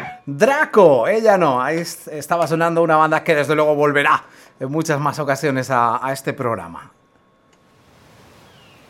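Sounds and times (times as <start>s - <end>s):
speech: 0.3s - 7.0s
sea waves: 7.7s - 8.8s.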